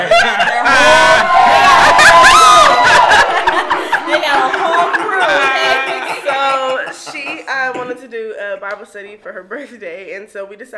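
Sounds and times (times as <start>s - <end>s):
overlapping voices chattering: 0.0s - 8.0s
small live audience laughing: 0.0s - 8.0s
whoops: 0.1s - 6.2s
speech: 8.0s - 10.7s.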